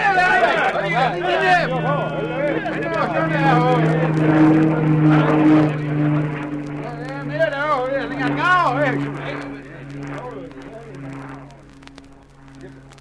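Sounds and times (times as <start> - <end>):
airplane flying overhead: 0.0 - 12.9.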